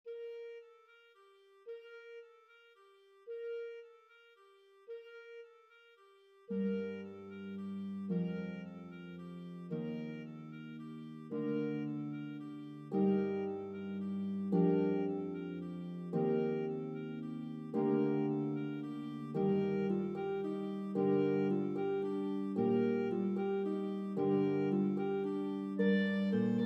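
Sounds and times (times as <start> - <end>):
Bb clarinet: 0.0 - 26.6
pedal harp: 6.5 - 26.6.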